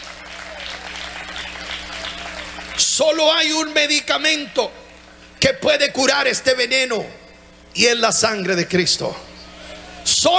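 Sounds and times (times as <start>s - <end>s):
church congregation applauding: 0.0s - 3.8s
low steady hum: 0.0s - 10.3s
speech: 2.9s - 4.8s, 5.4s - 7.2s, 7.8s - 9.3s.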